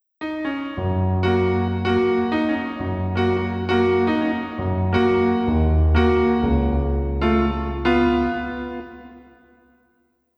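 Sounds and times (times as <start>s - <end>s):
piano playing in a lesson: 0.2s - 9.6s.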